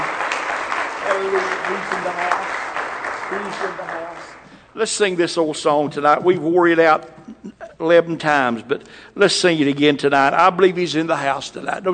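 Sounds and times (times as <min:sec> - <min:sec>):
audience clapping hands in praise: 0:00.0 - 0:04.7
speech: 0:01.2 - 0:02.6, 0:03.3 - 0:11.9.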